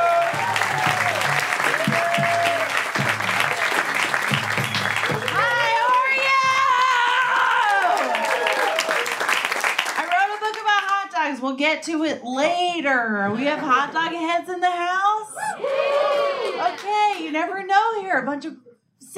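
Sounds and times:
whoops and high-pitched cheers: 0.0 - 2.8, 5.2 - 9.1, 15.4 - 16.7
crowd applause: 0.0 - 11.0, 15.5 - 17.4
speech: 11.6 - 15.1, 16.9 - 18.6.

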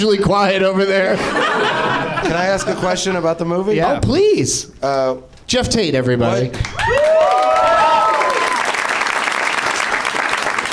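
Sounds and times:
speech: 0.0 - 7.4
laughter: 1.0 - 3.3
audience applause: 6.7 - 10.7.

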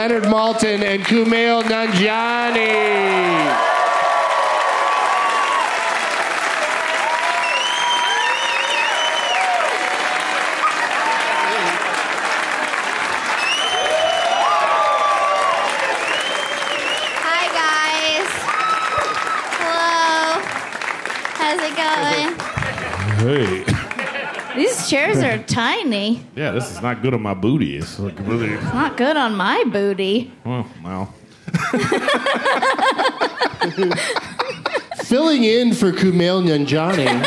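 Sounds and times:
speech: 0.0 - 3.8, 23.2 - 23.6, 24.8 - 34.3, 35.1 - 37.2
crowd applauding: 0.0 - 25.4, 36.1 - 37.2
crowd cheering and whooping: 1.7 - 20.7, 21.7 - 25.3
laughter: 21.9 - 25.4, 28.1 - 29.1, 31.5 - 37.2.

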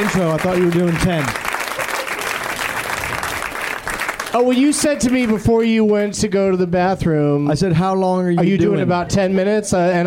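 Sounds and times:
audience applause as guests are welcomed: 0.0 - 6.1
speech: 0.1 - 1.4, 4.3 - 10.0.

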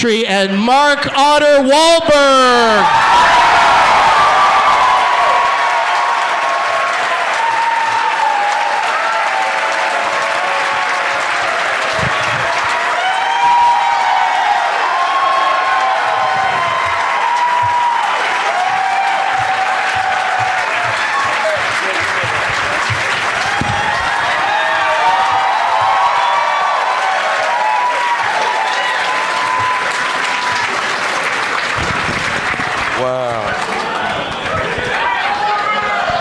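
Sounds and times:
speech: 0.0 - 3.2
audience cheers and whoops: 2.5 - 22.0, 23.3 - 30.9
audience applause: 2.8 - 36.2.

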